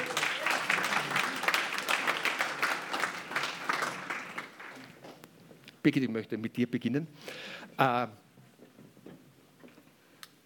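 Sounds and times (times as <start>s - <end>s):
audience applause: 0.0s - 5.0s
speech: 5.8s - 8.2s.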